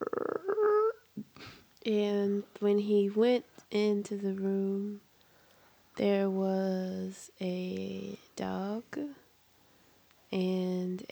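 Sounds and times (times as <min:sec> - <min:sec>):
voice imitating a door creaking open: 0:00.0 - 0:01.0
speech: 0:01.8 - 0:05.1, 0:06.0 - 0:09.2, 0:10.3 - 0:11.0.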